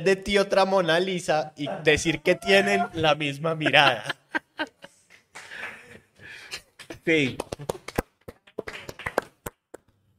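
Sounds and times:
speech: 0.0s - 4.7s, 7.1s - 7.8s
laughter: 2.2s - 6.1s
applause: 5.4s - 5.9s, 6.8s - 9.9s.

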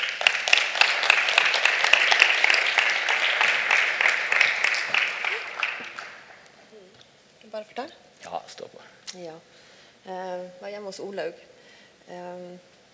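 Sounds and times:
audience applause: 0.0s - 6.6s
speech: 9.1s - 11.5s, 12.1s - 12.7s.

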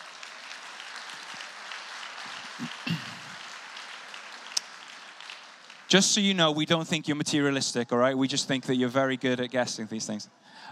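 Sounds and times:
audience applause: 0.0s - 6.9s
speech: 5.9s - 10.6s.

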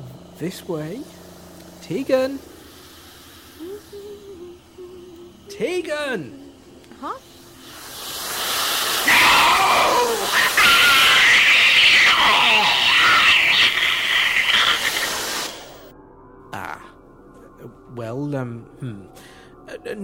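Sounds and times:
sci-fi sonic hairdryer weapon firing: 0.0s - 16.0s
speech: 0.4s - 1.2s, 1.9s - 2.5s, 3.6s - 4.4s, 5.6s - 6.4s, 7.0s - 7.3s, 18.0s - 19.2s, 19.8s - 20.0s.

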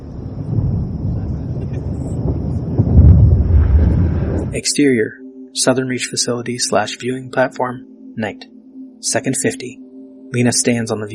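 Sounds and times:
thunder: 0.0s - 4.6s
speech: 4.6s - 11.1s.

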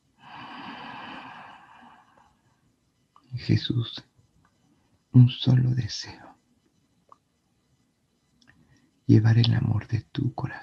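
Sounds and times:
group inhaling together during a guided breathing exercise: 0.2s - 2.2s
speech: 3.4s - 4.1s, 5.2s - 6.3s, 9.1s - 10.6s.

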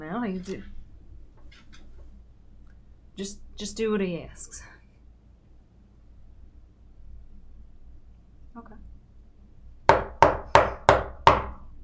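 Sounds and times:
speech: 0.0s - 0.8s, 3.2s - 4.7s
knocking on a front door: 9.9s - 11.6s.

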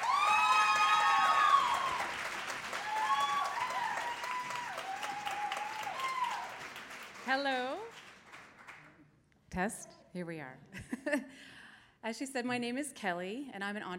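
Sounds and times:
audience whoops: 0.0s - 6.7s
audience applause welcoming an entrepreneur to the stage: 0.0s - 8.9s
speech: 7.3s - 7.8s, 9.6s - 13.9s.

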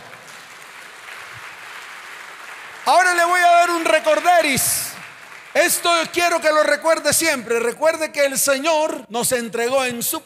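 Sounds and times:
audience applause: 0.0s - 6.8s
speech: 4.1s - 4.8s, 5.6s - 10.2s.

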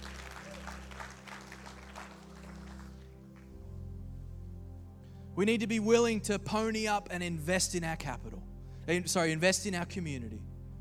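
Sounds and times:
audience clapping hands: 0.0s - 3.6s
low organ-like drone: 0.0s - 10.7s
speech: 5.4s - 10.5s.

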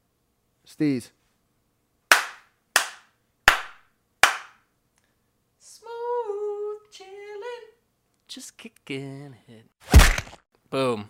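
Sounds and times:
speech: 0.7s - 1.2s, 8.4s - 10.1s, 10.7s - 11.0s
hand slaps: 2.1s - 4.6s.

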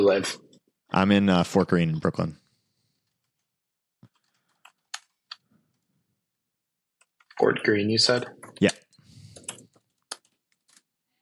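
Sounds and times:
speech: 0.0s - 2.4s, 7.4s - 8.8s
computer keyboard typing: 4.0s - 5.4s, 8.1s - 10.8s.

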